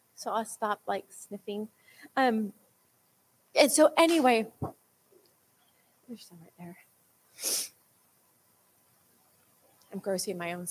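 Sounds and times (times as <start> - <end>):
speech: 0.2 - 2.6, 3.6 - 4.8, 6.1 - 7.7, 9.9 - 10.6
person sneezing: 7.4 - 7.8.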